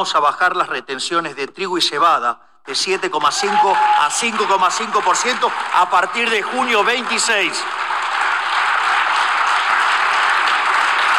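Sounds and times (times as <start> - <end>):
speech: 0.0 - 8.0
crowd applauding: 3.2 - 11.1.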